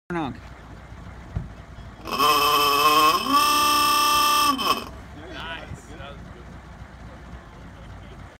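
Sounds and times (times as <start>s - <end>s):
Fiamm Cadillac car horn: 2.0s - 5.0s.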